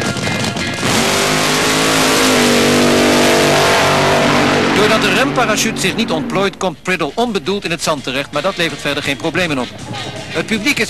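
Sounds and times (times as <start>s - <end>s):
12-cylinder 1800 hp dragster engine accelerating: 0.4s - 7.5s
speech: 5.0s - 10.8s.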